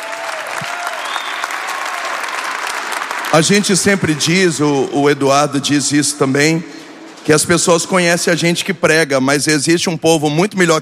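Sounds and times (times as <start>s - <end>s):
crowd applauding: 0.0s - 4.6s
speech: 3.3s - 10.8s.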